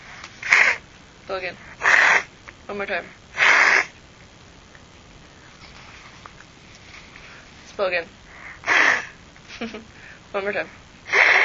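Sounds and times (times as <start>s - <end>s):
child blowing nose: 0.4s - 0.8s, 3.4s - 3.9s, 8.6s - 9.2s, 11.1s - 11.4s
speech: 1.3s - 2.0s, 2.7s - 3.2s, 7.8s - 8.2s, 9.6s - 10.8s.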